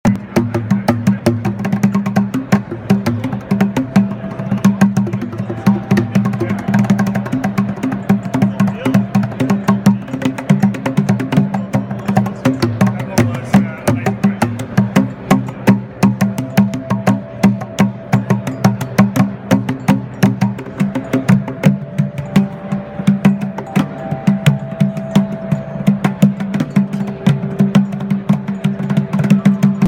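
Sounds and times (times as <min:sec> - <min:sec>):
congas: 0:00.0 - 0:29.8.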